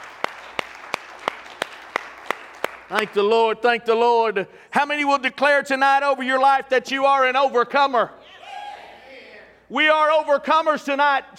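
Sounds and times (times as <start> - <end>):
audience hand clapping: 0.0 - 3.3
speech: 2.9 - 8.2, 9.7 - 11.3.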